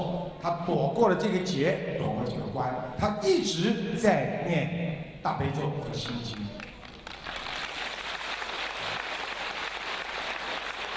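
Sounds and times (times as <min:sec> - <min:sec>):
speech: 0:00.4 - 0:06.7
audience applause: 0:06.8 - 0:10.9.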